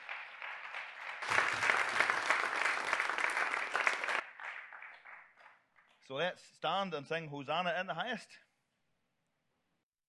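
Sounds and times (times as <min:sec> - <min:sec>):
audience applause: 0:00.0 - 0:05.4
speech: 0:06.1 - 0:08.4.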